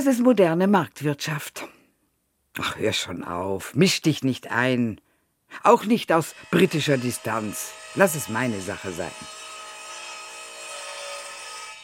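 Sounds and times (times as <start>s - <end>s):
speech: 0.0s - 1.8s, 2.6s - 9.4s
circular saw cutting: 5.7s - 11.8s.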